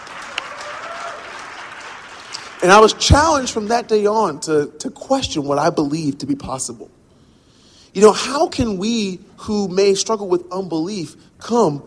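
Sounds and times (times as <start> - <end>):
audience applause at a religious talk: 0.0 - 2.9
speech: 2.6 - 7.0, 7.9 - 11.8.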